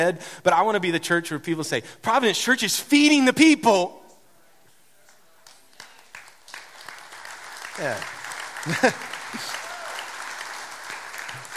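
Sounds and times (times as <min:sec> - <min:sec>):
speech: 0:00.0 - 0:04.0, 0:07.8 - 0:09.5
audience clapping: 0:05.4 - 0:11.5
laughter: 0:08.6 - 0:09.9.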